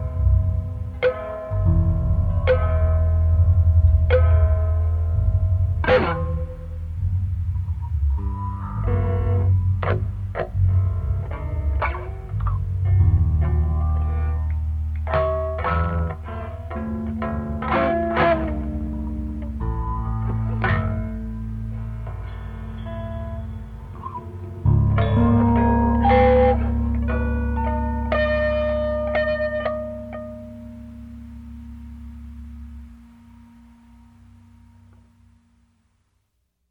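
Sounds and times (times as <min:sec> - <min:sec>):
bass guitar: 0:00.0 - 0:35.5.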